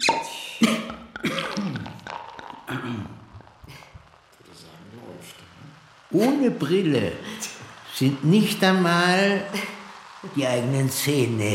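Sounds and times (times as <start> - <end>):
person coughing: 0.6 - 2.0, 2.7 - 3.2
person laughing: 0.6 - 3.8
speech: 6.1 - 7.3, 8.0 - 11.5.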